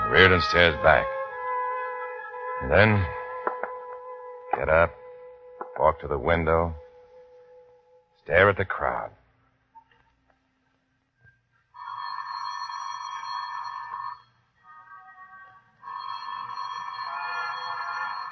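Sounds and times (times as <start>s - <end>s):
speech: 0.2s - 1.2s, 2.6s - 3.2s, 4.6s - 5.0s, 5.8s - 6.8s, 8.3s - 9.2s
telephone ringing: 11.8s - 14.4s, 15.8s - 18.3s.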